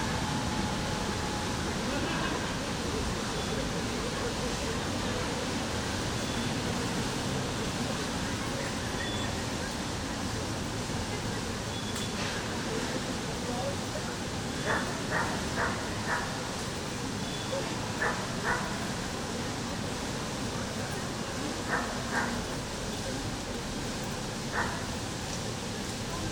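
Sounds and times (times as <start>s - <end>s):
rainy street soundscape in Besiktas: 0.0s - 26.3s.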